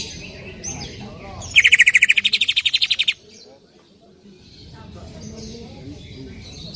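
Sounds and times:
Greater green leafbird buzzy trill: 1.5s - 3.1s.

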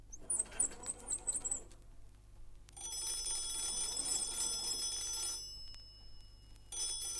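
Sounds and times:
old hand-cranked telephone shrill metallic bell ringing: 0.1s - 1.8s, 2.8s - 7.0s
old hand-cranked telephone crank rattle: 0.1s - 2.0s, 2.8s - 5.4s.

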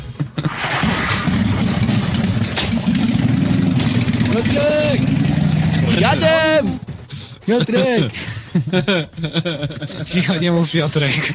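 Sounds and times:
laughter: 0.0s - 0.8s, 5.8s - 11.3s
Jawa motorcycle engine idling: 1.4s - 7.1s
speech: 4.4s - 5.2s, 5.9s - 6.8s, 7.5s - 11.3s.

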